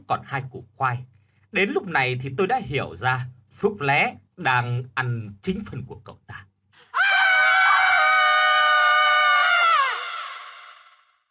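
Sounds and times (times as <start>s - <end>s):
speech: 0.1s - 7.2s
group of people screaming in unison: 6.8s - 11.2s.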